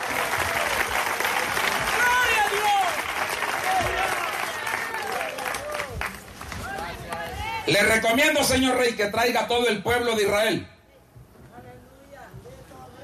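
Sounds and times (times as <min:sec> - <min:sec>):
audience applause: 0:00.0 - 0:07.0
speech: 0:07.7 - 0:10.7.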